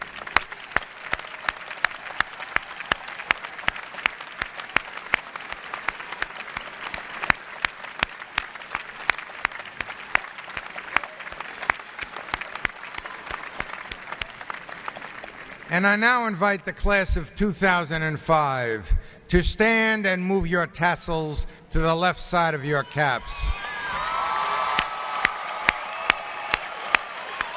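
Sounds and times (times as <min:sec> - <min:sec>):
audience applause for graduates' families: 0:00.0 - 0:15.8, 0:23.0 - 0:27.5
speech: 0:15.8 - 0:23.6.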